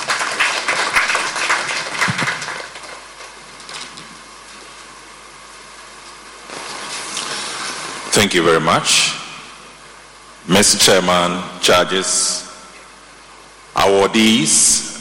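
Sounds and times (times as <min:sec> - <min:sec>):
audience applause: 0:00.0 - 0:03.3
speech: 0:08.2 - 0:09.2, 0:10.5 - 0:12.3, 0:13.8 - 0:14.9.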